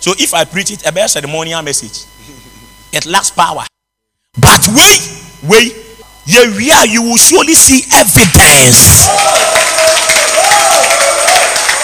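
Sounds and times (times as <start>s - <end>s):
speech: 0.0s - 2.2s, 2.9s - 3.7s, 4.4s - 10.1s
crowd clapping: 8.8s - 11.8s.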